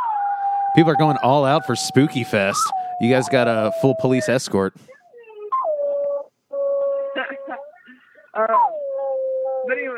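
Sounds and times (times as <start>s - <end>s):
dog howling: 0.0s - 7.8s, 8.5s - 9.9s
speech: 0.8s - 5.0s.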